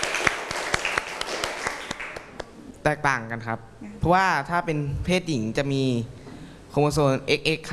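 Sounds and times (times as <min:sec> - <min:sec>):
classroom applause for a student: 0:00.0 - 0:02.5
speech: 0:02.8 - 0:07.7.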